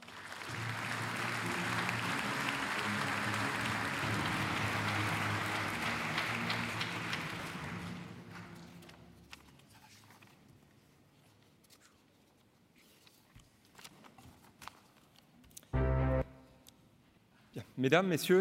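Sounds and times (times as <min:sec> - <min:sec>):
audience applause: 0:00.0 - 0:08.8
speech: 0:17.7 - 0:18.3.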